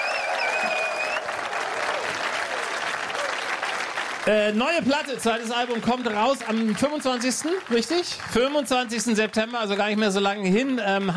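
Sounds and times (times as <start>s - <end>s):
high whistles: 0.0s - 1.3s
audience applause: 0.0s - 11.1s
speech: 4.2s - 11.1s.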